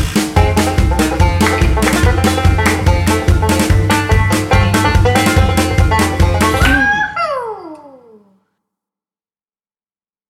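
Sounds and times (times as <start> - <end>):
bluegrass music: 0.0 - 7.2.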